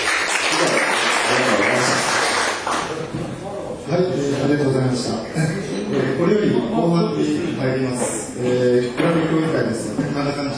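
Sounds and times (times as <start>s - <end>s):
audience applause: 0.0s - 2.9s
speech: 3.9s - 10.5s.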